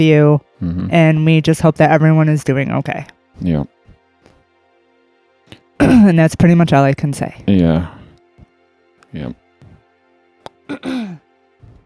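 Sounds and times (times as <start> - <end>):
speech: 0.0 - 3.8, 5.8 - 8.0, 9.1 - 9.4, 10.7 - 11.1
throat clearing from a speaker with a sore throat: 5.8 - 6.0, 10.7 - 11.2.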